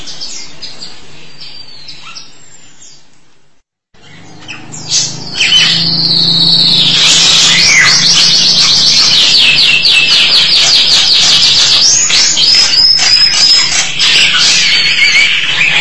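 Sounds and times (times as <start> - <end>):
low hum: 4.0 - 14.0
starling song: 4.0 - 15.7.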